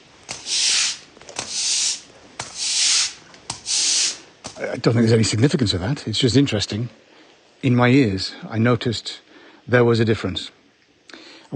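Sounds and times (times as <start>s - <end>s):
broom sweeping dry concrete: 0.3s - 4.2s
speech: 4.6s - 10.6s.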